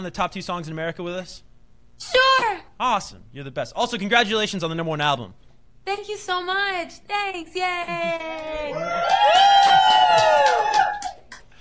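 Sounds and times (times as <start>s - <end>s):
speech: 0.0s - 10.9s
laughter: 7.8s - 10.3s
small group cheering and whooping over a Skype call: 8.0s - 11.5s
clapping: 8.4s - 11.6s
long sustained high woo: 8.8s - 11.3s.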